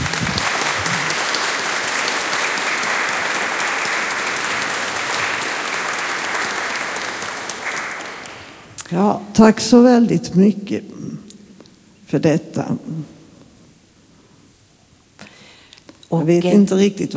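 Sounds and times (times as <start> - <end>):
congregation applauding: 0.0 - 8.7
speech: 8.9 - 11.2, 12.1 - 13.2, 16.1 - 17.1.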